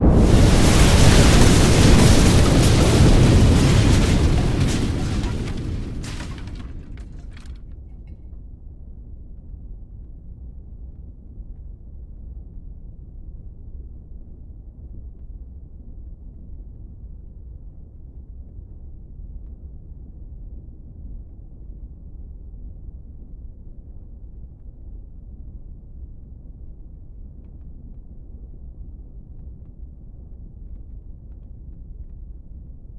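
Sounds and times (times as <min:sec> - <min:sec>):
slowed-down explosion: 0:00.0 - 0:07.4.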